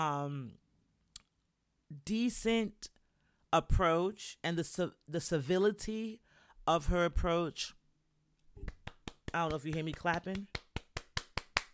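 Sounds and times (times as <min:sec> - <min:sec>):
speech: 0:00.0 - 0:00.6, 0:02.0 - 0:07.8, 0:08.6 - 0:10.6
one person clapping hands: 0:08.6 - 0:11.7.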